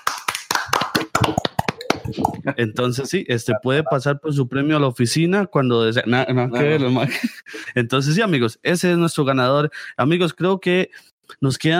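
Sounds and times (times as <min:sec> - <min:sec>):
scattered hand claps for a shirt-contest winner: 0:00.0 - 0:02.5
speech: 0:02.1 - 0:11.7.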